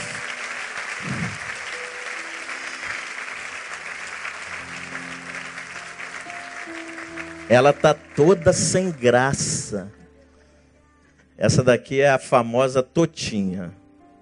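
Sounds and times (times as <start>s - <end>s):
audience applauding: 0.0s - 10.0s
speech: 7.5s - 10.0s, 11.4s - 13.8s.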